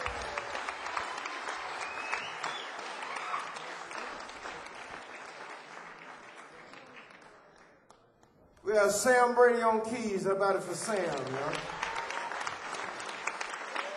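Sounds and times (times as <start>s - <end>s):
faint cheers: 0.0s - 3.7s, 11.7s - 12.8s, 13.7s - 13.9s
crowd applauding for band member: 0.0s - 8.8s, 10.5s - 13.9s
speech: 8.7s - 11.7s.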